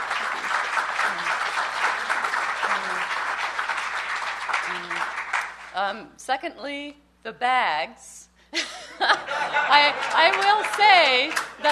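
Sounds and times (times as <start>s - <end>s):
conference audience clapping for its sponsors: 0.0s - 5.8s, 9.5s - 11.7s
speech: 5.8s - 11.7s
laughter: 8.6s - 11.7s.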